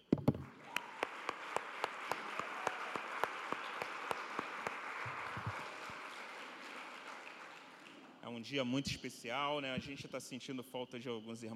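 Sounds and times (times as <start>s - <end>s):
audience applauding: 0.4s - 8.4s
speech: 8.4s - 11.5s.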